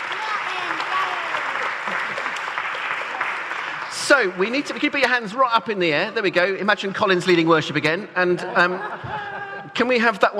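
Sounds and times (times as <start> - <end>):
audience applause: 0.0 - 5.8
laughter: 1.0 - 2.6, 8.2 - 10.3
speech: 4.1 - 10.3.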